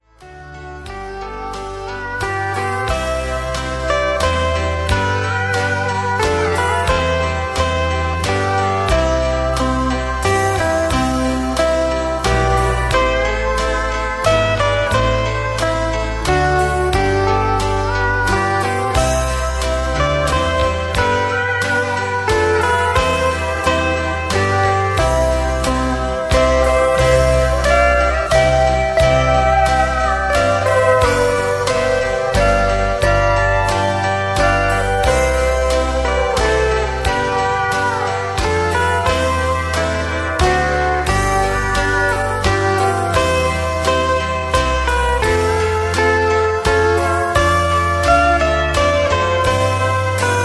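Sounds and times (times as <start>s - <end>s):
high key lead melodies: 0.0s - 50.4s.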